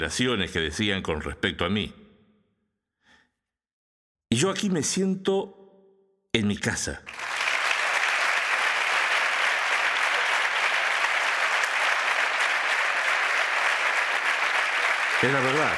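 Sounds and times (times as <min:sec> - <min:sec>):
speech: 0:00.0 - 0:02.0, 0:04.3 - 0:05.6, 0:06.3 - 0:07.2, 0:15.2 - 0:15.7
audience applause: 0:07.1 - 0:15.7.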